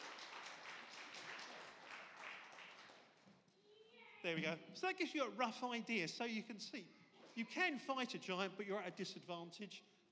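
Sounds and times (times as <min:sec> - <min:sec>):
audience applause: 0:00.0 - 0:03.2
speech: 0:04.2 - 0:09.9.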